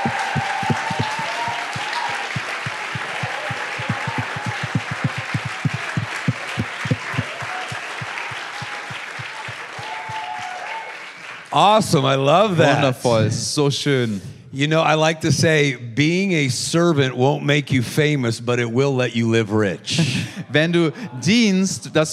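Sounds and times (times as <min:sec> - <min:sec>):
audience applause: 0:00.0 - 0:13.0
speech: 0:11.6 - 0:22.1.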